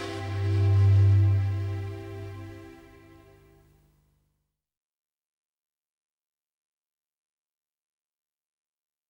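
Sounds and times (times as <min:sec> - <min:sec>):
flute: 0:00.0 - 0:03.6.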